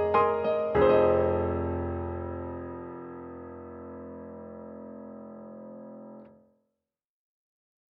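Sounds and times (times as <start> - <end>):
grand piano on a KORG KRONOS 2: 0.0 - 6.3.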